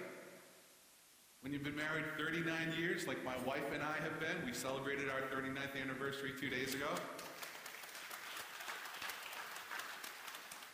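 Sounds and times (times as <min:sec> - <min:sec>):
speech: 0:01.4 - 0:07.3
audience applause: 0:07.2 - 0:10.7.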